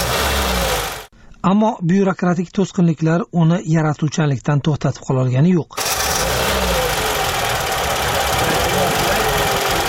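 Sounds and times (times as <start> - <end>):
car engine restarted on a fast-charging long-life battery, rough knocking drone: 0.0 - 1.1, 5.8 - 9.8
speech: 1.4 - 5.9.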